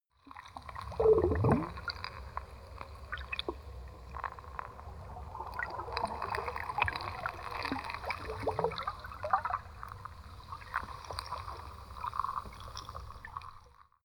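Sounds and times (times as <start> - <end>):
sea: 0.0 - 14.0.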